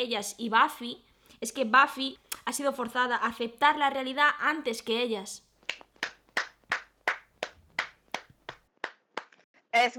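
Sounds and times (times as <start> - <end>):
speech: 0.0 - 5.8, 9.8 - 9.9
hand clapping: 5.6 - 9.4.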